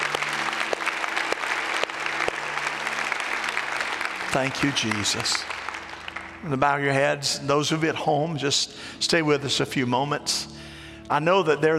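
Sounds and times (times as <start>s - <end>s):
audience clapping: 0.0s - 6.7s
speech: 4.3s - 5.6s, 6.4s - 11.7s.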